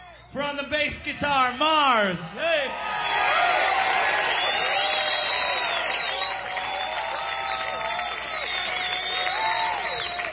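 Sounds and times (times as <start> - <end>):
speech: 0.4 - 3.9
crowd applauding: 2.7 - 10.3.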